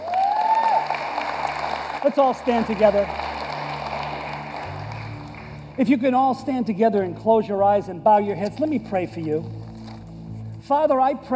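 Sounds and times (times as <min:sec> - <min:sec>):
audience hand clapping: 0:00.0 - 0:06.5
speech: 0:02.0 - 0:03.2, 0:05.8 - 0:09.6, 0:10.7 - 0:11.3.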